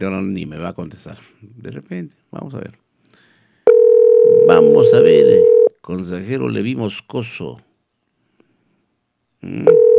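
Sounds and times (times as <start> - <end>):
speech: 0.0 - 2.8, 4.2 - 7.7, 9.4 - 9.9
telephone ringing tone of an unanswered call: 3.7 - 5.7, 9.7 - 9.9.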